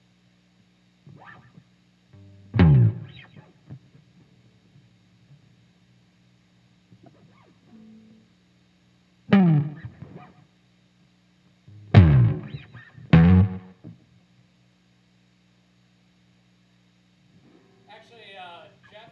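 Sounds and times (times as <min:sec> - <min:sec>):
bass slide: 0:02.2 - 0:03.1, 0:11.7 - 0:13.8.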